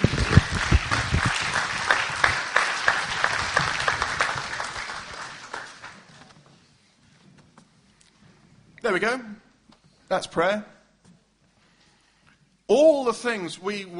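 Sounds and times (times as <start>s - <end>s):
crowd applause: 0.0s - 6.3s
speech: 9.0s - 9.3s, 10.1s - 10.8s, 12.7s - 13.9s.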